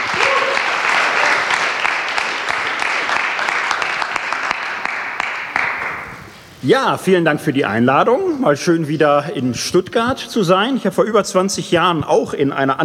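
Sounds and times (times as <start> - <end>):
audience applause: 0.0 - 6.1
speech: 6.6 - 12.8.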